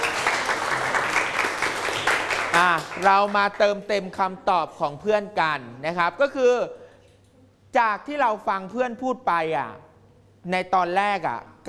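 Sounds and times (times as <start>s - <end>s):
classroom applause for a student: 0.0s - 3.6s
speech: 2.6s - 6.8s, 7.7s - 11.6s.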